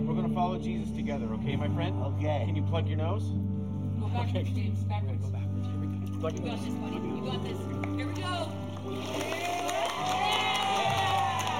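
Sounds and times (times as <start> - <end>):
speech: 0.4 - 9.4
people cheering: 8.8 - 11.5.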